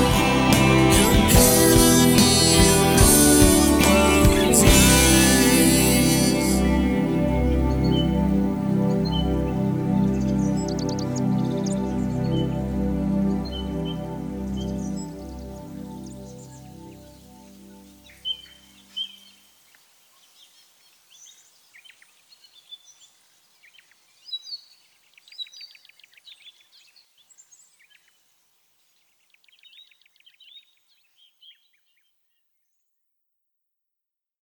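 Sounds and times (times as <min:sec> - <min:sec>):
karaoke full mix with harmony: 0:00.0 - 0:14.4.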